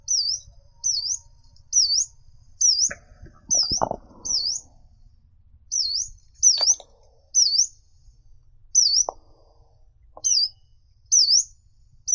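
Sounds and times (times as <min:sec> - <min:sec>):
yellow-browed warbler Phylloscopus inornatus calling: 0:00.0 - 0:04.8, 0:05.7 - 0:07.8, 0:08.7 - 0:09.3, 0:10.2 - 0:11.5.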